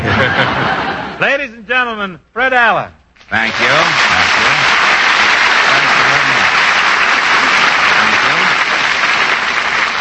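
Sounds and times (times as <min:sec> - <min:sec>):
laughter: 0:00.0 - 0:01.2
speech: 0:00.2 - 0:04.2
audience applause: 0:03.3 - 0:09.9.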